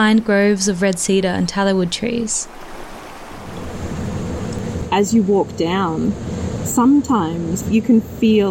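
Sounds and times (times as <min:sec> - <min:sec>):
speech: 0:00.0 - 0:02.8, 0:05.0 - 0:08.4
waterfall cascading 200 metres into a gorge: 0:00.0 - 0:04.9.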